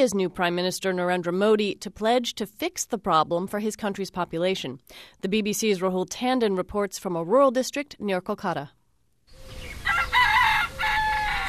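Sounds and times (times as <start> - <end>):
speech: 0.0 - 8.8
rooster crowing in a rural field in Ringdanga, West Bengal, India at dawn: 9.4 - 11.4.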